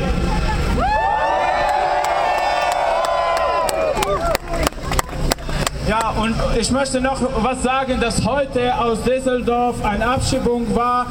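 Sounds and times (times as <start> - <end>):
crowd cheering and whooping: 0.4 - 5.4
audience clapping: 1.5 - 6.2
speech: 6.2 - 11.1.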